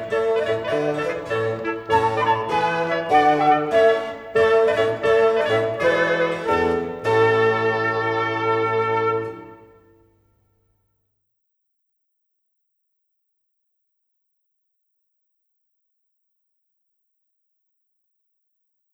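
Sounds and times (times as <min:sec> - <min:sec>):
quartet playing in A: 0:00.0 - 0:10.0.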